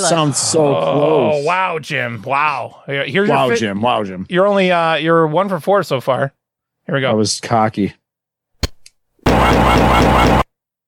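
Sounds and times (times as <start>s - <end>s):
speech: 0.0s - 8.0s
plasma rifle firing in the video game Doom: 9.3s - 10.4s.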